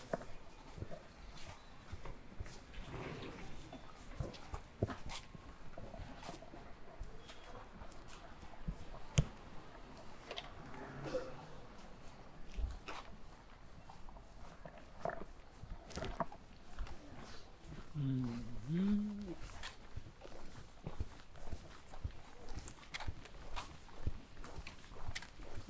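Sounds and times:
street noise in a hutong lane: 0.0s - 25.6s
scattered voices: 18.0s - 19.4s.

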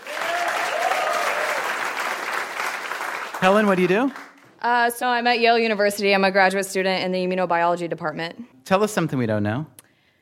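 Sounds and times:
audience applause for the final contestant at a live event: 0.0s - 4.5s
speech: 3.4s - 9.8s.

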